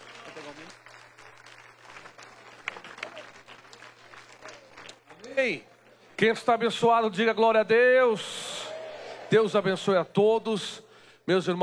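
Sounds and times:
audience applause: 0.0 - 6.1
speech: 5.4 - 8.4, 9.3 - 11.6.

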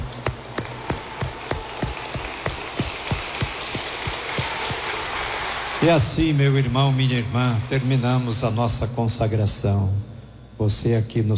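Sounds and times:
applause: 0.6 - 5.8
speech: 5.8 - 11.3.

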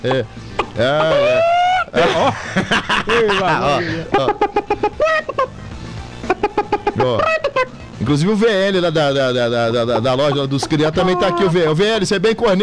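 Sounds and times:
person imitating a clucking hen: 0.0 - 2.4, 3.1 - 8.0, 10.2 - 11.7
speech: 0.0 - 5.6, 7.0 - 12.6
laughter: 0.0 - 12.0.

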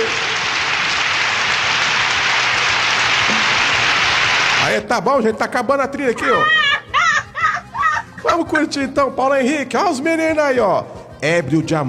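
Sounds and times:
applause: 0.0 - 4.6
speech: 4.7 - 6.6, 8.4 - 11.8
laughter: 6.1 - 8.9.

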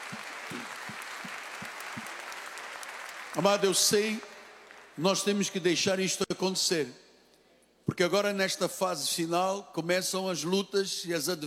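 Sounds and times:
audience applause: 0.0 - 4.9
speech: 3.4 - 4.3, 5.0 - 7.0, 7.9 - 11.4.

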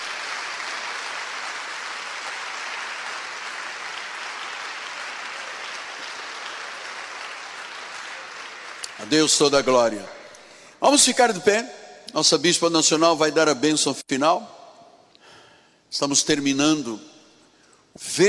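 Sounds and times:
audience applauding: 0.0 - 9.4
speech: 9.0 - 10.2, 10.8 - 14.6, 15.9 - 17.1, 18.0 - 18.2.

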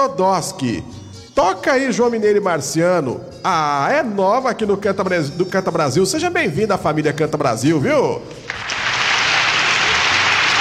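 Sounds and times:
speech: 0.0 - 8.7
applause from the audience of a live country music show: 8.4 - 10.5.

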